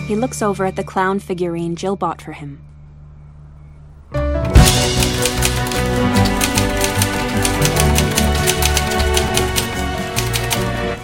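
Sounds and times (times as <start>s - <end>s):
speech: 0.1s - 2.7s
typewriter keys clacking: 4.6s - 10.8s.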